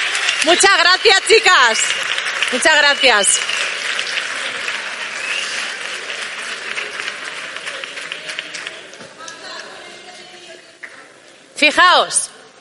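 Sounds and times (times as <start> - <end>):
audience applause: 0.0 - 9.8
speech: 0.4 - 3.7, 11.6 - 12.3.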